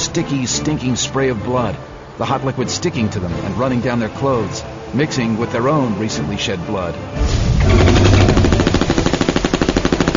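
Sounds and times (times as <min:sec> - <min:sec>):
speech: 0:00.2 - 0:08.0
Uzi submachine gun fire: 0:07.6 - 0:10.1.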